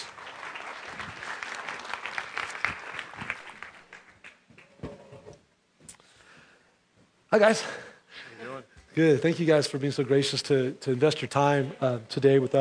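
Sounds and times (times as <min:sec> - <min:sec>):
church congregation clapping to welcome a family on stage: 0:00.0 - 0:04.8
speech: 0:07.3 - 0:07.8, 0:09.0 - 0:12.5.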